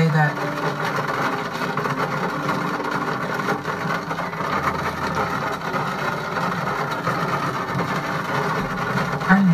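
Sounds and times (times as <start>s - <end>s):
steady rain: 0.0s - 9.5s.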